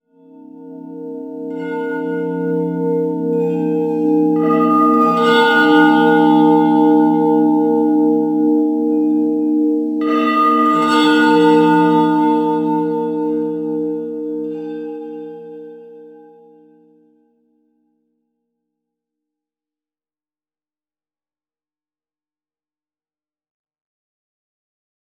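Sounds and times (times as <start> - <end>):
temple bells: 1.3 - 14.6.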